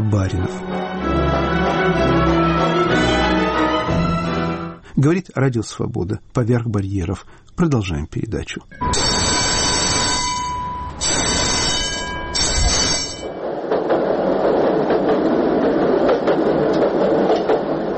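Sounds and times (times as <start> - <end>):
tram running on rails: 0.0 - 8.0, 8.6 - 17.9
speech: 0.1 - 2.8, 5.0 - 9.2.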